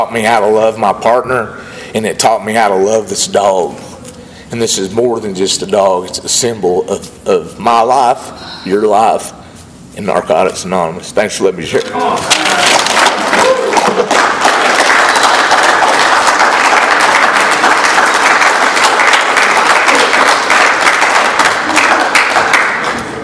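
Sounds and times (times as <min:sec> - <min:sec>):
speech: 0:00.0 - 0:03.9, 0:04.5 - 0:09.4, 0:10.0 - 0:12.8
room full of people applauding: 0:12.1 - 0:23.1.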